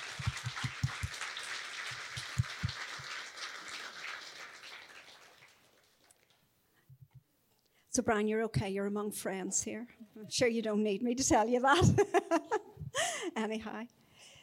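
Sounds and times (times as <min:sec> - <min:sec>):
audience clapping: 0:00.0 - 0:06.4
speech: 0:08.0 - 0:12.6, 0:13.4 - 0:14.0.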